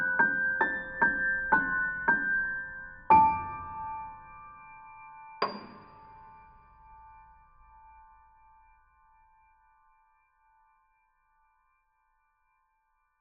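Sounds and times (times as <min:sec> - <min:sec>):
emotional new age music: 0:00.0 - 0:09.4.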